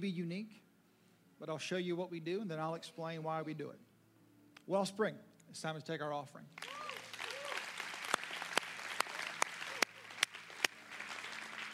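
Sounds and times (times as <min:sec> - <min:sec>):
speech: 0:00.0 - 0:00.7, 0:01.4 - 0:03.9, 0:04.7 - 0:06.9
audience clapping: 0:06.5 - 0:11.7.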